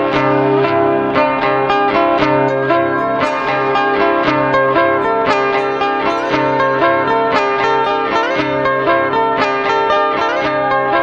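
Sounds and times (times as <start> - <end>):
siren with delay effect: 0.1 - 10.9.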